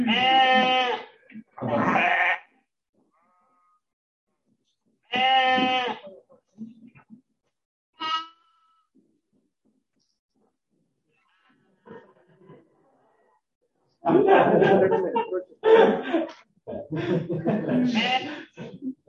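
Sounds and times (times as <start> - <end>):
sheep bleating in a played video: 0.0 - 2.5, 5.1 - 6.1, 8.0 - 8.9, 17.8 - 18.5
laughter: 14.0 - 19.0.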